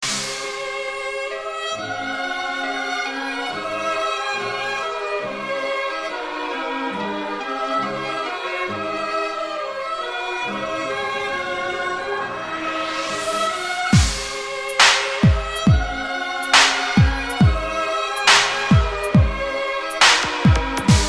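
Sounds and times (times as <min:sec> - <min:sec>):
violin: 0:00.0 - 0:21.0.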